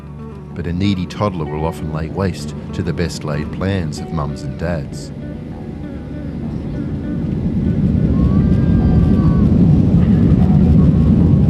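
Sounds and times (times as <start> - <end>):
airplane taking off: 0.0 - 11.4
speech: 0.6 - 5.2.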